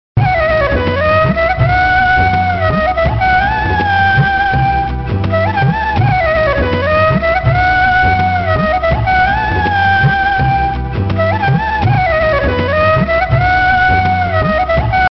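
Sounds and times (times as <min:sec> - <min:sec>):
retro flute-like ringtone loop: 0:00.2 - 0:15.1.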